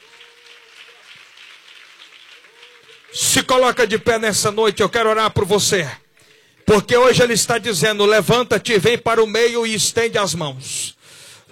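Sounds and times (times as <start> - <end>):
audience applauding: 0.0 - 4.8
speech: 3.1 - 6.0, 6.7 - 11.4.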